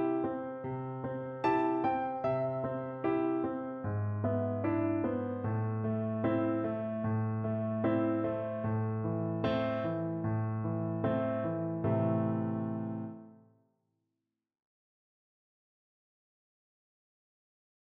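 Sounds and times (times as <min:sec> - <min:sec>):
piano: 0:00.0 - 0:13.6.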